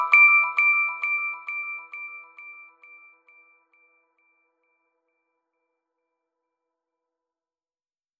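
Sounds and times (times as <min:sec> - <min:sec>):
corporate ambient music: 0:00.0 - 0:03.4.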